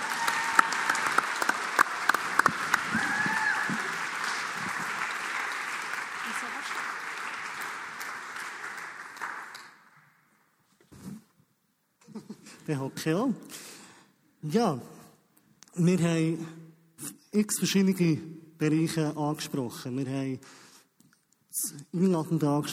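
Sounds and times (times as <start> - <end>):
warm audience applause: 0.0 - 10.1
speech: 12.7 - 13.6, 14.4 - 15.0, 15.8 - 16.6, 17.4 - 20.6, 21.9 - 22.7.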